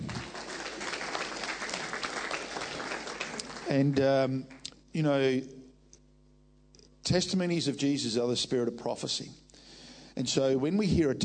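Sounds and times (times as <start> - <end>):
audience applause: 0.0 - 4.0
speech: 3.7 - 5.6, 7.1 - 9.4, 10.2 - 11.2.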